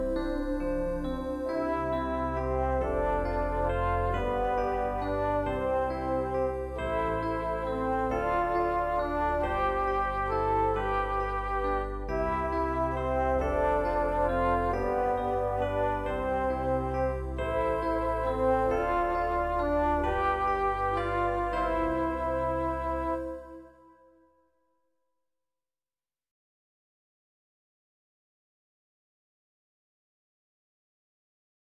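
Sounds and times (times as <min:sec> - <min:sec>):
instrumental music: 0:00.0 - 0:24.6.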